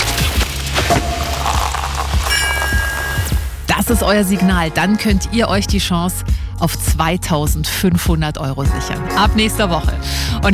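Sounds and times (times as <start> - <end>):
champagne cork popping: 0.0 - 3.7
speech: 3.9 - 10.5.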